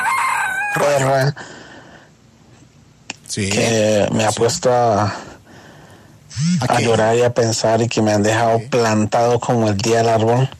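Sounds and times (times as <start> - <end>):
rooster crowing: 0.0 - 1.3
low hiss: 0.2 - 10.5
speech: 0.7 - 1.6, 3.3 - 5.3, 6.3 - 10.5.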